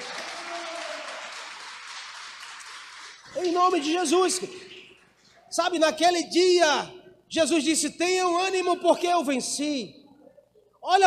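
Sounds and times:
audience applauding: 0.0s - 4.0s
speech: 3.4s - 4.7s, 5.5s - 10.0s, 10.8s - 11.0s.

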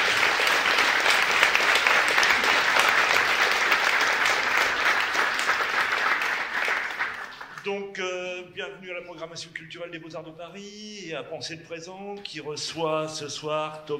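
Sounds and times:
room full of people applauding: 0.0s - 7.6s
speech: 7.7s - 13.9s.

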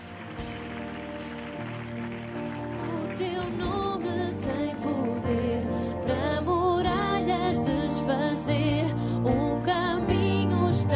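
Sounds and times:
audience applause: 0.0s - 5.4s
sustained keyboard chords: 0.0s - 10.9s.

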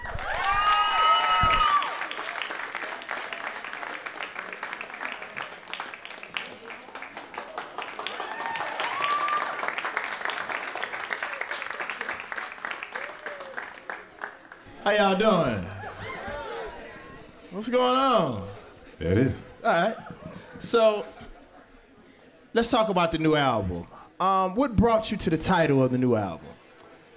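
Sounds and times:
sustained audience applause: 0.0s - 17.0s
crowd cheers: 0.0s - 17.4s
laughter: 14.7s - 22.2s
speech: 14.9s - 15.7s, 17.6s - 20.0s, 20.6s - 21.1s, 22.6s - 26.5s.

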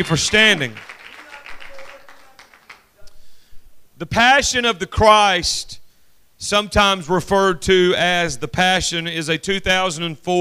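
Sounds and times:
speech: 0.0s - 1.0s, 4.0s - 5.8s, 6.4s - 10.4s
audience clapping hands: 0.0s - 3.0s
voices calling out: 0.0s - 3.1s.

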